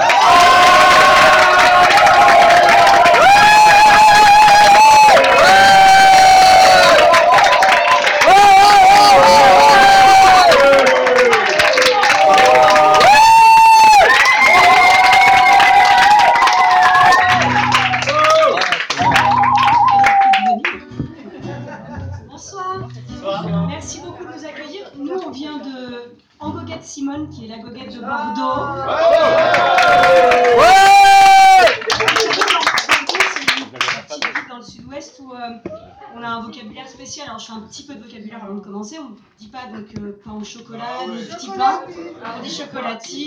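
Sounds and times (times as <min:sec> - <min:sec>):
whoops: 0:00.0 - 0:20.7, 0:28.8 - 0:31.8
crowd clapping: 0:00.0 - 0:21.0, 0:29.0 - 0:34.5
laughter: 0:20.9 - 0:24.4
speech: 0:40.4 - 0:43.2.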